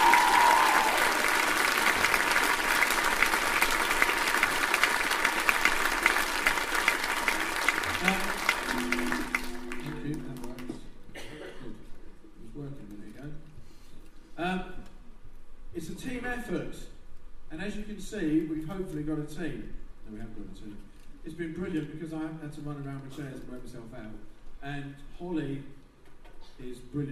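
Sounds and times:
audience applause and cheering: 0:00.0 - 0:10.6
speech: 0:18.1 - 0:19.8, 0:20.4 - 0:25.8, 0:26.6 - 0:27.0.

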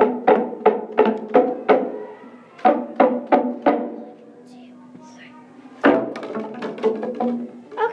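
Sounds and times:
band playing beats: 0:00.0 - 0:02.0, 0:02.6 - 0:04.1, 0:05.8 - 0:07.8.

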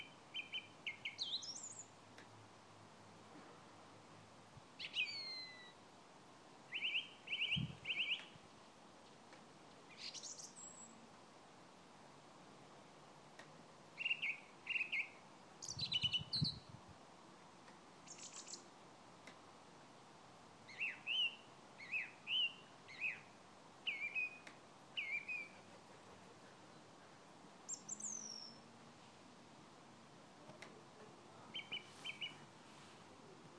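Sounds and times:
birdsong on a Sunday morning in Christchurch: 0:00.0 - 0:02.0, 0:04.8 - 0:05.8, 0:06.7 - 0:08.4, 0:09.9 - 0:11.0, 0:14.0 - 0:16.7, 0:18.0 - 0:18.7, 0:20.7 - 0:28.7, 0:31.4 - 0:32.5.

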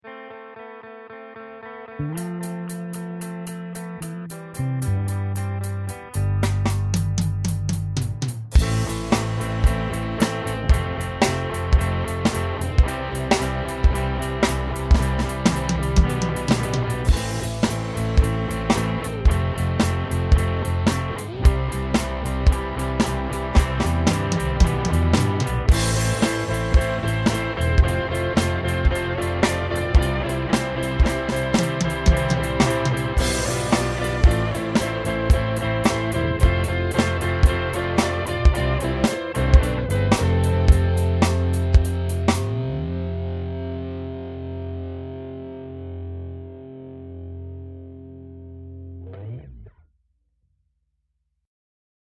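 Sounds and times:
rock beat in four-four time: 0:00.0 - 0:48.1.

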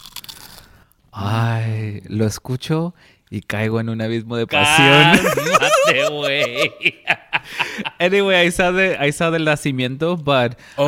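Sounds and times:
crunch of a buñuelo being bitten: 0:00.0 - 0:00.8
speech: 0:01.2 - 0:10.8
laughter: 0:04.6 - 0:08.4.

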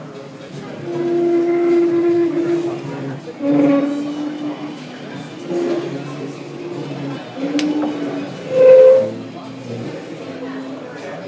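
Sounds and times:
chair: 0:00.9 - 0:04.1, 0:05.4 - 0:10.0.

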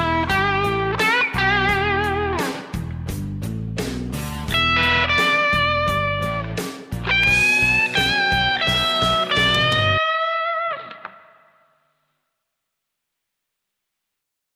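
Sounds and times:
blues guitar solo: 0:00.0 - 0:03.2, 0:04.2 - 0:11.7.

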